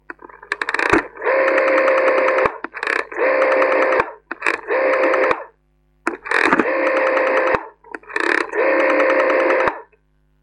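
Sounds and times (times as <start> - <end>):
rotary dial telephone: 0.1 - 5.5, 6.1 - 10.0.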